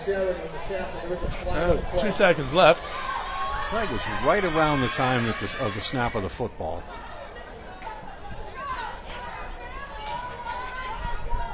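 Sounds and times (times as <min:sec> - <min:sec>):
speech: 0:00.0 - 0:07.1
noisy crowd at football game: 0:00.0 - 0:11.5.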